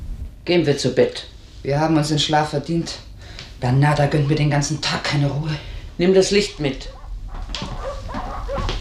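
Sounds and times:
speech: 0.4s - 7.0s
dogs barking: 3.6s - 5.5s, 6.2s - 8.7s.

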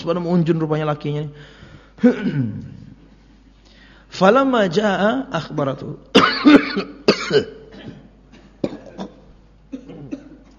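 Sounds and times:
speech: 0.0s - 2.8s, 4.1s - 8.0s
coughing: 2.0s - 2.7s, 6.1s - 10.5s.

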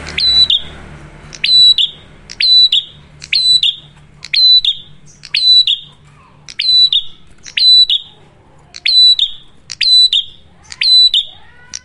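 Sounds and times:
low hum: 0.0s - 11.2s
prinia song: 0.0s - 11.8s.

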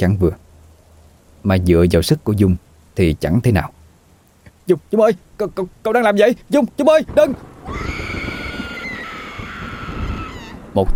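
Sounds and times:
speech: 0.0s - 0.4s, 1.4s - 3.8s, 4.7s - 8.1s, 10.8s - 10.9s
terrified scream: 7.5s - 10.8s.

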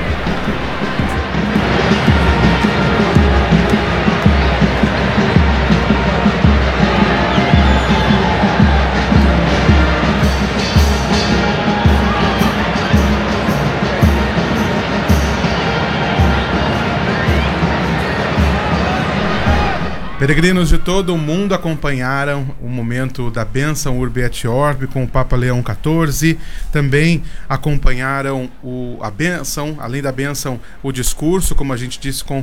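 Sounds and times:
shouts and cheers: 0.0s - 22.4s
crowd murmuring: 0.0s - 24.8s
speech: 20.2s - 32.4s.

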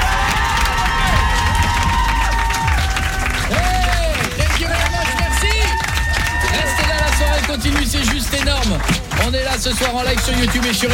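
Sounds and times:
studio audience shouting and whooping for a guest: 0.0s - 8.8s
studio audience at a live evening show clapping: 0.0s - 10.9s
speech: 9.6s - 10.9s.

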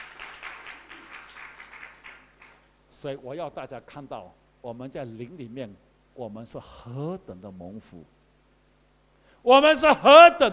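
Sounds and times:
congregation clapping hands during a Chinese-language church sermon: 0.0s - 2.7s
speech: 3.0s - 8.2s, 9.4s - 10.5s.

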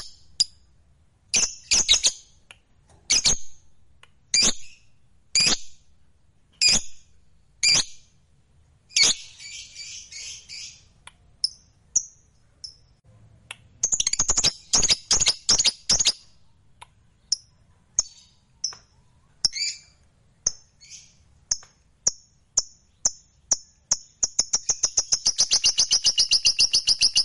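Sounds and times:
lovebird calls: 0.0s - 0.7s, 1.3s - 2.4s, 3.1s - 3.7s, 4.3s - 5.9s, 6.6s - 8.1s, 8.9s - 13.0s, 13.6s - 27.2s.

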